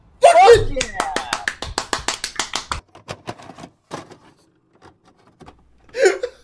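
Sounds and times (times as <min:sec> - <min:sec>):
person shouting: 0:00.2 - 0:01.6
loud rapid hand clapping: 0:00.6 - 0:02.8.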